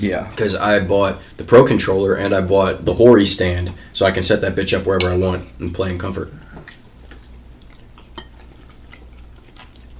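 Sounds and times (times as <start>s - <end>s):
speech: 0.0s - 6.4s
chewing ravioli with cutlery: 6.6s - 9.9s.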